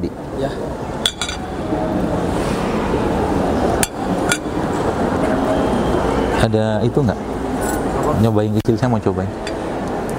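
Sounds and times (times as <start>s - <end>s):
speech: 0.0s - 0.9s, 6.4s - 7.3s, 8.1s - 9.5s
steady noise: 0.0s - 10.1s
spoon clinking against dish: 1.0s - 1.5s.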